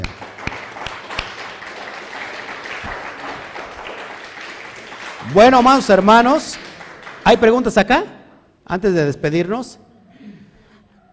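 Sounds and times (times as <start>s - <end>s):
audience applause: 0.0s - 7.8s
speech: 5.3s - 6.6s, 7.2s - 9.8s.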